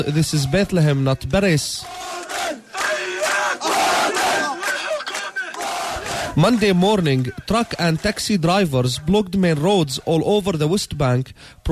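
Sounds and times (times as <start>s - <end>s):
speech: 0.0s - 2.6s, 6.4s - 11.7s
crowd of protesters chanting in unison: 0.0s - 8.4s.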